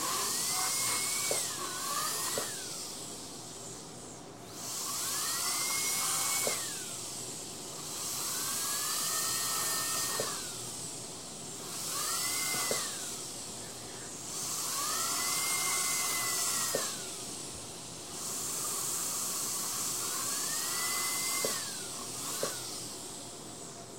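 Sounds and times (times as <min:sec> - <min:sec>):
dentist drill drilling patient's tooth: 0:00.0 - 0:23.8.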